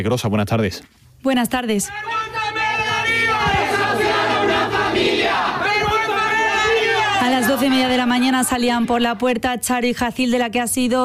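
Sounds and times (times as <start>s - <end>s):
speech: 0.0s - 2.6s, 7.2s - 11.0s
crowd of protesters shouting condemnation in unison: 1.9s - 9.6s.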